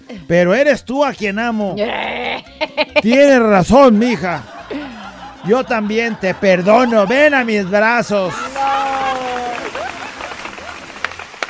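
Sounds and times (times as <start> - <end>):
speech: 0.1 - 4.5, 5.4 - 8.5
laughter: 1.7 - 11.4
applause: 6.6 - 11.4.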